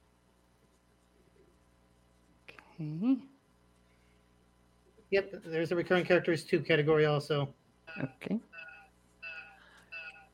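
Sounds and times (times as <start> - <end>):
speech: 2.8 - 3.3, 5.1 - 8.6
beeping sound on a call line: 7.9 - 10.3.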